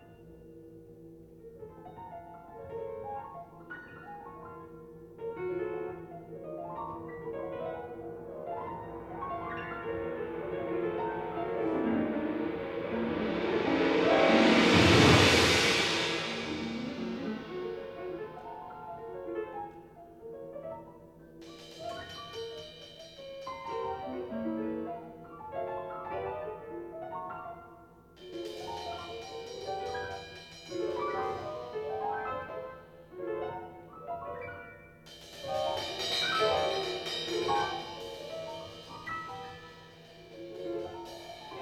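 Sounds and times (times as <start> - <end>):
piano in a duet with percussion: 0.0 - 41.6
percussion in a duet with piano: 6.8 - 19.2, 21.4 - 25.0, 28.2 - 33.1, 35.0 - 41.6.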